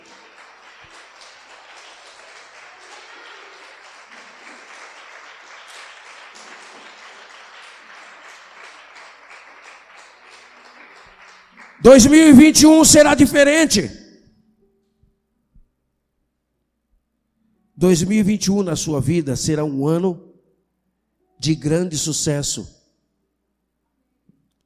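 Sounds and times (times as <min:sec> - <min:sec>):
audience applause: 0:00.0 - 0:13.2
speech: 0:11.8 - 0:14.0, 0:17.8 - 0:20.3, 0:21.4 - 0:22.8.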